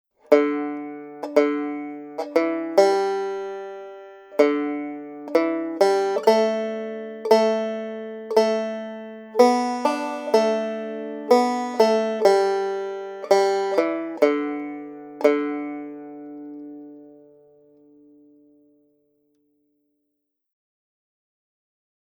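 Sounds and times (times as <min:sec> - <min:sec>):
melody: 0:00.5 - 0:16.6.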